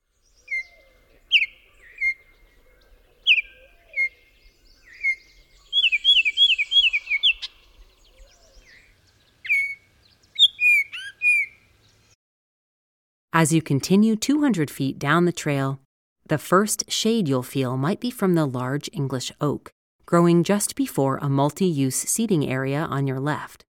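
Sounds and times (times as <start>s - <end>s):
Baltimore oriole song of short loud clear whistled notes: 0.0s - 12.2s
speech: 13.4s - 23.7s.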